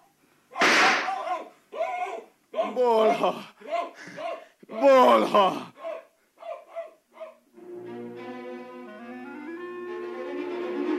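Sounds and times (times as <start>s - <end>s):
rifle shot fired at an animal hiding under a bed: 0.6s - 1.2s
speech: 2.8s - 5.7s.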